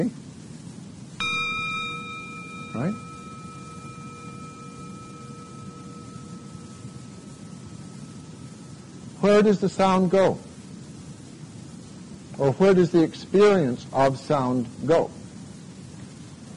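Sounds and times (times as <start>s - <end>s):
speech: 0.0s - 0.2s, 2.8s - 3.1s, 9.2s - 10.5s, 12.4s - 15.2s
gong: 1.2s - 9.2s.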